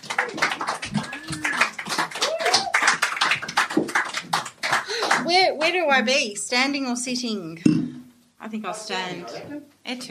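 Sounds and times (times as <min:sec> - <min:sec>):
audience applause welcoming performer: 0:00.0 - 0:05.3
whoops and cheers: 0:00.2 - 0:03.0
speech: 0:05.6 - 0:07.8, 0:08.4 - 0:10.0.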